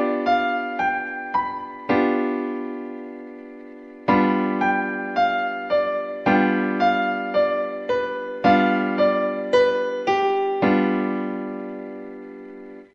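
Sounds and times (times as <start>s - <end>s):
G7 piano chord: 0.0s - 12.9s.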